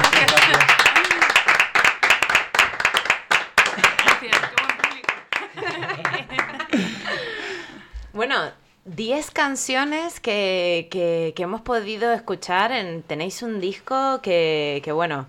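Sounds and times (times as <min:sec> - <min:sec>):
small audience clapping for a band: 0:00.0 - 0:06.8
people chuckling: 0:05.4 - 0:07.9
speech: 0:08.9 - 0:15.2.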